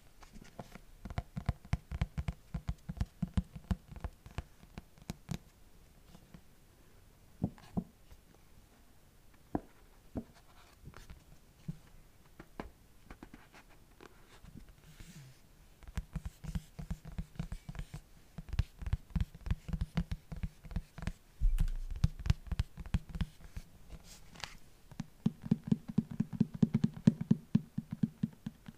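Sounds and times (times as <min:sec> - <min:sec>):
fingers tapping on a book cover: 0:00.5 - 0:05.4, 0:15.8 - 0:23.7, 0:24.4 - 0:28.7.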